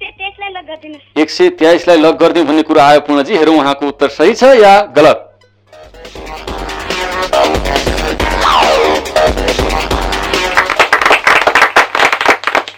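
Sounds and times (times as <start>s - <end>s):
speech: 0.6s - 5.2s
music: 5.0s - 11.5s
tonal sweep: 6.2s - 10.5s
quiz show audience clapping: 10.0s - 12.7s.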